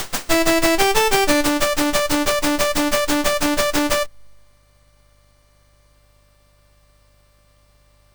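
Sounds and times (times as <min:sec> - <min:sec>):
MOS6581R4 SID chip music: 0:00.0 - 0:04.4.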